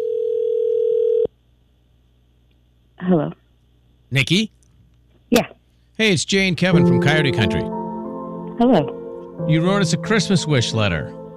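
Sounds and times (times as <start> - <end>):
telephone dial tone: 0.0 - 1.3
speech: 3.1 - 3.4, 4.1 - 4.6, 5.3 - 7.8, 8.6 - 11.2.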